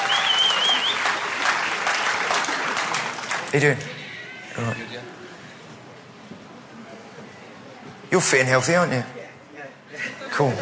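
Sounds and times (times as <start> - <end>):
audience applause: 0.0 - 3.8
speech: 3.5 - 4.0, 4.6 - 5.4, 8.1 - 9.2, 10.4 - 10.6.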